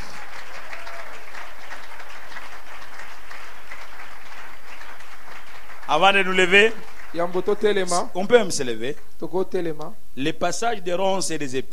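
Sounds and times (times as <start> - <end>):
church congregation applauding: 0.0 - 8.9
speech: 5.9 - 11.7.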